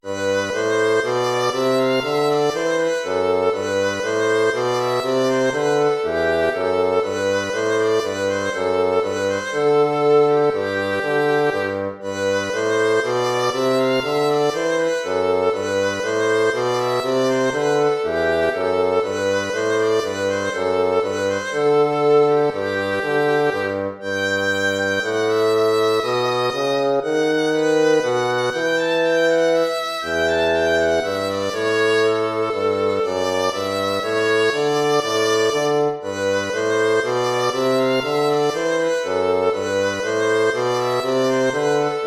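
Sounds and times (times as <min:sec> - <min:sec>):
baroque minuet in a major key: 0:00.0 - 0:42.0.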